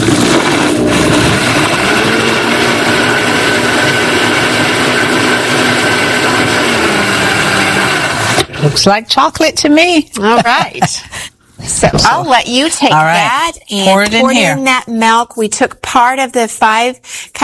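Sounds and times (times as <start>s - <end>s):
blender blending vanilla drink mixture: 0.0s - 8.9s
speech: 8.8s - 17.4s.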